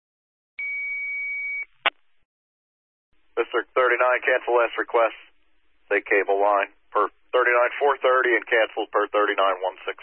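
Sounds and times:
radio dispatch cancel tone beep: 0.6s - 1.7s
speech: 3.4s - 5.3s, 5.9s - 10.0s.

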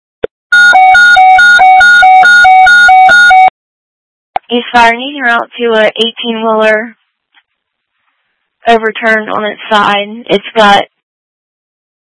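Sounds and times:
fire dispatch alert tones: 0.6s - 3.5s
speech: 4.6s - 7.0s, 8.7s - 10.9s.

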